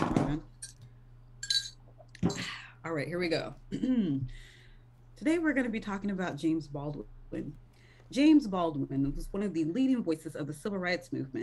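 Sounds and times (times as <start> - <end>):
glass clinking while taking a sip: 0.6 - 0.8, 1.4 - 1.8
speech: 2.2 - 4.5, 5.2 - 11.4.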